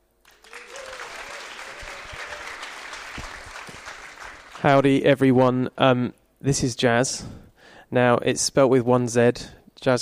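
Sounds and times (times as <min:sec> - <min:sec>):
audience applause welcoming a guest: 0:00.2 - 0:04.8
speech: 0:04.6 - 0:10.0.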